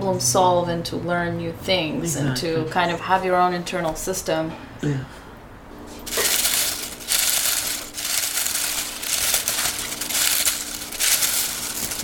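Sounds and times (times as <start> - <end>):
speech: 0.1 - 5.2
crunching homegrown kale chips: 6.1 - 12.0.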